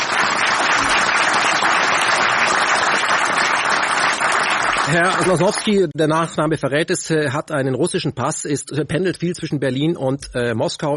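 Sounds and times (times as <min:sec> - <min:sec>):
audience applauding: 0:00.0 - 0:05.8
speech: 0:04.9 - 0:10.9.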